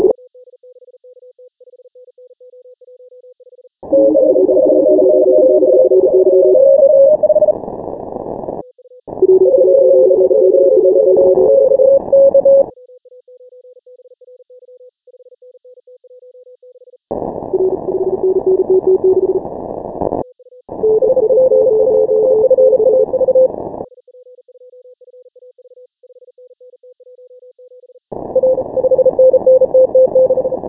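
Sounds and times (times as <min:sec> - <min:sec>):
morse code beeps: 0:03.9 - 0:07.6, 0:09.2 - 0:12.7, 0:17.6 - 0:19.4, 0:20.8 - 0:23.5, 0:28.4 - 0:30.6.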